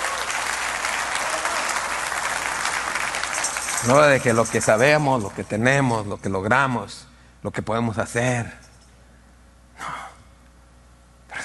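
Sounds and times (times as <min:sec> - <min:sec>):
loud audience applause: 0:00.0 - 0:04.6
speech: 0:03.8 - 0:08.6.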